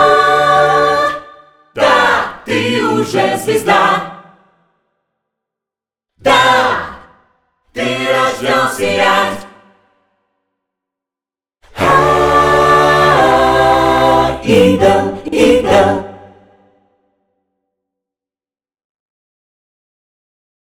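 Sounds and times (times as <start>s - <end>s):
choirs singing: 0.0s - 4.6s, 6.2s - 7.2s, 7.8s - 9.8s, 11.7s - 16.8s.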